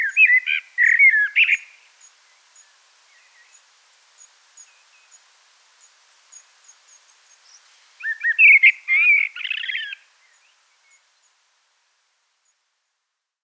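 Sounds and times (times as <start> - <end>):
Turdus merula: 0.0 - 3.6, 6.4 - 11.4.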